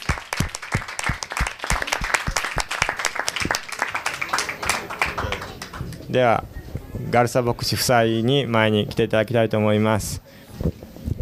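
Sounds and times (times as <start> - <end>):
crowd applauding: 0.0 - 6.1
murmur of voices: 1.7 - 11.2
speech: 6.1 - 10.8.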